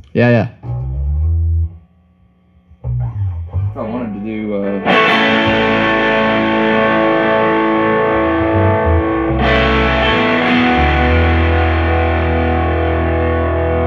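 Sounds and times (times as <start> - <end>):
speech: 0.2 - 0.6, 4.2 - 5.2
electric guitar through overdriven amp: 2.8 - 13.8.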